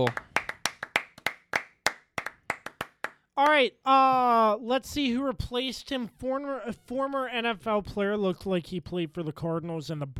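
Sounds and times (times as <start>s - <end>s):
speech: 0.0s - 0.2s, 3.4s - 10.1s
person clapping hands: 0.0s - 3.6s.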